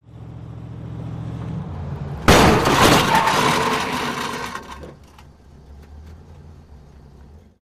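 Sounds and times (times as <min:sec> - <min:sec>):
moving vehicle in reverse gear colliding with stationary vehicle: 0:02.2 - 0:06.2
great metal scrapes: 0:02.3 - 0:05.3.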